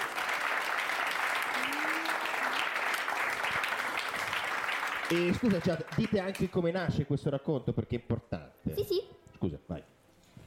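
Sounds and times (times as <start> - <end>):
audience applause: 0.0 - 6.7
speech: 5.1 - 9.6.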